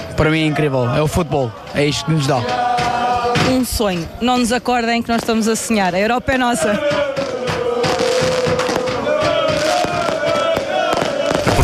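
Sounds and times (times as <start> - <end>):
speech: 0.2 - 2.9, 3.5 - 7.0
fireworks in Torres Vedras celebrating a victory: 5.0 - 11.6.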